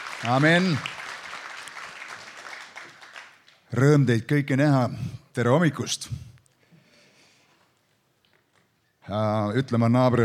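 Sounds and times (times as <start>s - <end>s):
congregation applause during a church service: 0.0s - 4.0s
speech: 0.2s - 1.0s, 3.7s - 6.3s, 9.1s - 10.2s.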